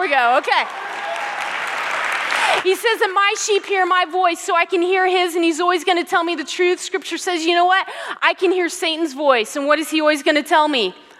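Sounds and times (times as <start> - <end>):
crowd applauding: 0.0 - 2.7
speech: 0.1 - 1.0, 2.5 - 11.0.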